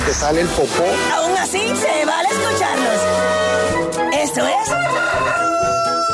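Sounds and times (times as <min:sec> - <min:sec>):
speech: 0:00.1 - 0:06.1
rooster crowing: 0:04.4 - 0:06.1.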